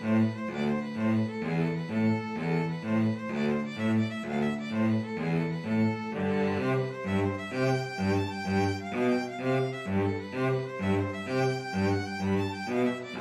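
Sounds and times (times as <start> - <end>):
two violins and cello playing a tarantella: 0.0 - 13.1.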